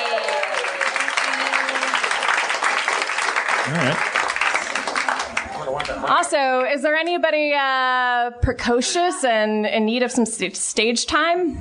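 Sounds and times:
audience applause: 0.0 - 6.2
speech: 3.7 - 4.1, 6.0 - 11.5.

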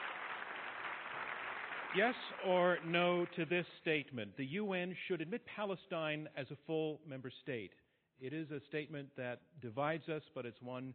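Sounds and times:
audience applause: 0.0 - 3.3
speech: 1.9 - 10.9.

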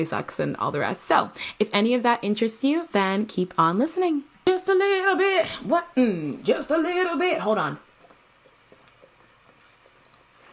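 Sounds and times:
speech: 0.0 - 7.8
person gulping coffee: 7.9 - 10.5.

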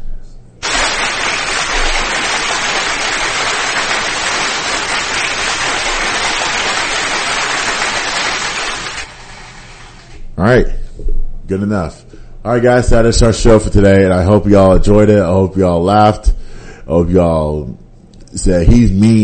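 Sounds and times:
clapping: 0.6 - 9.1
speech: 10.4 - 10.8, 11.5 - 16.3, 16.9 - 19.2.

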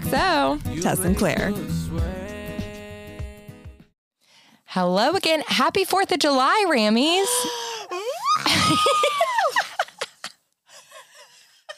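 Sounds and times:
speech: 0.1 - 2.2, 4.7 - 7.6, 8.7 - 9.2
person mock crying, sobbing and screaming: 7.1 - 10.0
laughter: 8.2 - 11.7.

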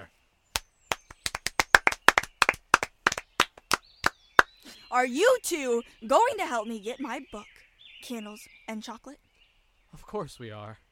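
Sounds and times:
hand clapping: 0.6 - 4.2
speech: 4.9 - 9.2, 10.0 - 10.8.

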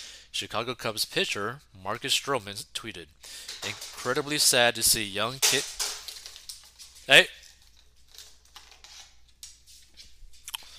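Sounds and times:
speech: 0.4 - 5.8, 7.1 - 7.4
plastic Gatorade bottle crinkling as a husky plays with it: 3.4 - 4.5, 5.3 - 9.6.

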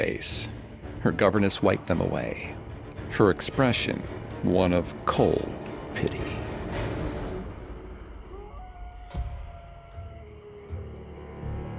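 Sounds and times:
speech: 0.0 - 6.9
thin howl: 7.8 - 11.7.

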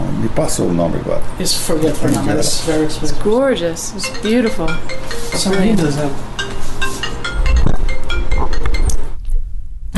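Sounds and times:
speech: 0.3 - 6.4
mobile phone ringing: 3.9 - 9.1.

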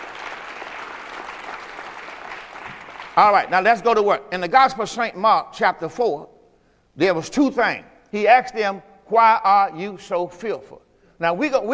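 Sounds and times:
audience clapping hands: 0.0 - 3.6
speech: 3.2 - 6.3, 7.0 - 11.7.

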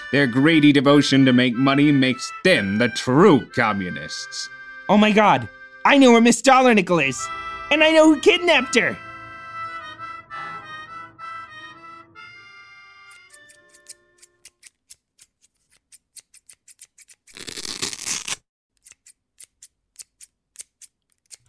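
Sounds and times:
speech: 0.1 - 9.0
scissors cutting a garter belt into strips: 13.1 - 21.4.

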